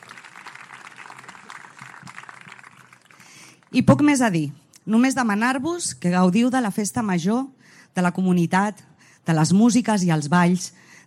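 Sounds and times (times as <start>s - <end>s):
audience applause: 0.0s - 3.4s
speech: 3.7s - 10.9s.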